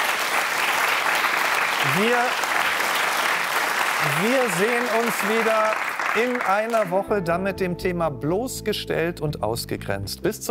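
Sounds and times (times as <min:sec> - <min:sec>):
studio audience applause: 0:00.0 - 0:07.0
speech: 0:01.8 - 0:02.5, 0:04.0 - 0:10.4.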